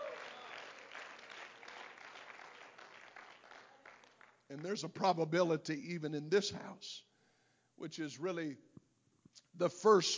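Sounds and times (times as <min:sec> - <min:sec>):
audience clapping hands in praise: 0:00.0 - 0:05.0
speech: 0:04.5 - 0:07.1, 0:07.8 - 0:08.7, 0:09.4 - 0:10.1.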